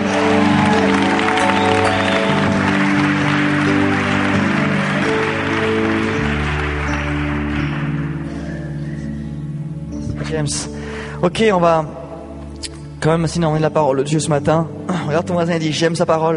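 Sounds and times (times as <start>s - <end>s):
congregation applauding and acclaiming at a church service: 0.0s - 8.7s
loud sustained keyboard chords: 0.0s - 16.3s
speech: 10.4s - 12.0s, 13.0s - 16.3s.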